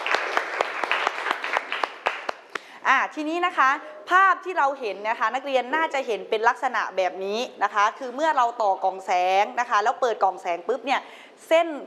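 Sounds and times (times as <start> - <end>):
classroom applause: 0.0 - 2.7
speech: 2.9 - 11.8.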